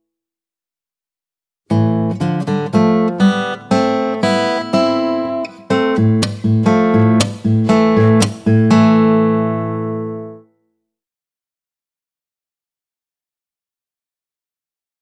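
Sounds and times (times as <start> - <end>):
acoustic guitar strumming: 1.7 - 10.4.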